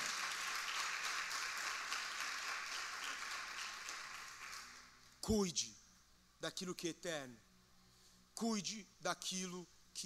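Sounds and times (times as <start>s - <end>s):
applause: 0.0s - 5.0s
speech: 5.3s - 5.8s, 6.4s - 7.5s, 8.4s - 10.0s.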